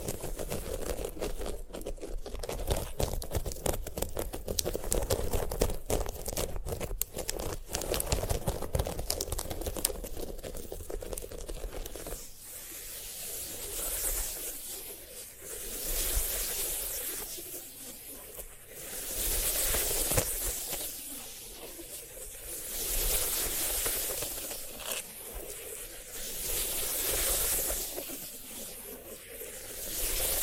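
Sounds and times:
dried sunflower head crackling and scratching: 0.0s - 12.3s, 19.1s - 21.7s, 22.7s - 25.8s
soft hissy rubbing strokes: 0.0s - 30.4s.

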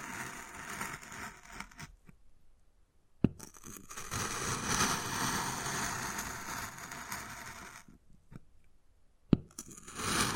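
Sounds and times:
wood carving with long rough scraping strokes: 0.0s - 2.0s, 3.5s - 7.9s, 9.6s - 10.3s.

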